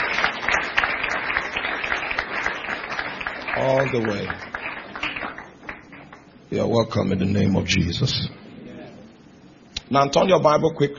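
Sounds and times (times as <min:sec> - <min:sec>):
sustained audience applause: 0:00.0 - 0:06.2
speech: 0:03.6 - 0:04.5, 0:06.5 - 0:08.4, 0:09.9 - 0:10.9.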